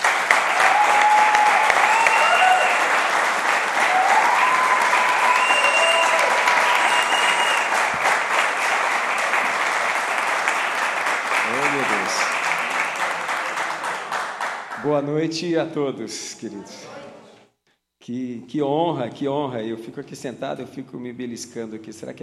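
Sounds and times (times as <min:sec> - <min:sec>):
cheering and whistles: 0:00.0 - 0:08.0
large crowd applause: 0:00.0 - 0:15.0
speech: 0:14.9 - 0:17.0, 0:18.1 - 0:22.2.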